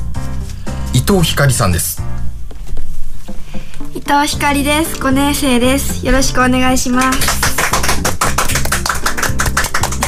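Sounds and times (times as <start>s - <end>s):
speech: 1.1s - 2.0s, 4.1s - 7.7s
applause welcoming a guest: 6.9s - 10.0s.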